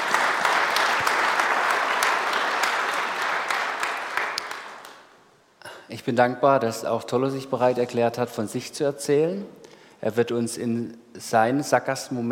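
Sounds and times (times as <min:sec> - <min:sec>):
audience applause: 0:00.0 - 0:05.1
speech: 0:06.0 - 0:12.3.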